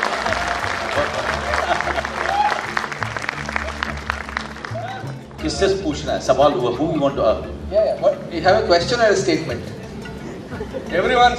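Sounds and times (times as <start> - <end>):
laughter: 0.0 - 2.8, 10.1 - 11.3
audience applause: 0.0 - 5.2
speech: 5.4 - 9.8, 10.9 - 11.3.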